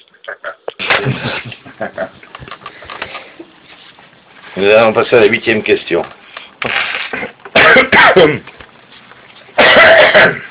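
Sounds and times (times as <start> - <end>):
speech: 1.8 - 2.0, 4.6 - 6.8, 7.7 - 8.5, 10.2 - 10.4
people coughing from lubricant vapours at work: 7.2 - 8.4, 9.6 - 10.4.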